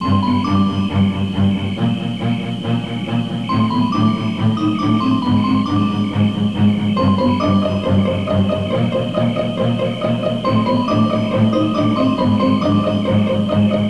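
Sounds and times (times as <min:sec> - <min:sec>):
sneaky music: 0:00.0 - 0:13.8.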